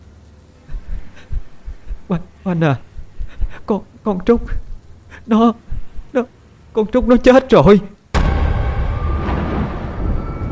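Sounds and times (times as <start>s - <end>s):
speech: 2.1s - 2.9s, 3.7s - 4.6s, 5.3s - 7.9s
loud rolling thunder: 8.2s - 10.5s.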